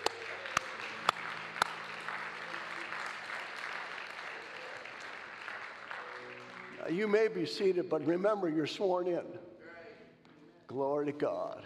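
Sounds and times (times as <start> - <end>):
audience applauding: 0.0 - 7.5
speech: 6.9 - 9.5, 10.7 - 11.6.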